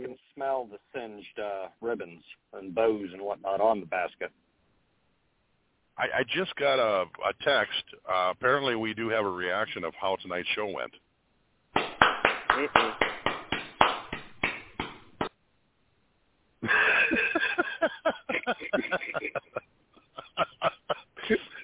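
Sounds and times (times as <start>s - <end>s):
speech: 0.6s - 4.5s, 6.0s - 11.0s, 12.6s - 13.0s
lone audience member clapping: 11.8s - 15.3s
laughter: 16.6s - 21.6s.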